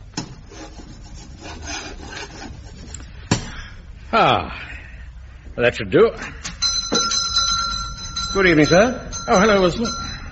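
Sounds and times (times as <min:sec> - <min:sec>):
chalk scratching on a blackboard: 0:00.2 - 0:03.0
speech: 0:04.1 - 0:04.7, 0:05.6 - 0:06.4, 0:08.4 - 0:10.0.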